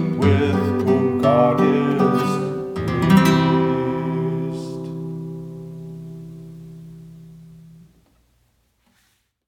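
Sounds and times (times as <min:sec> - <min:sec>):
hymn sung in Spanish: 0:00.0 - 0:05.3.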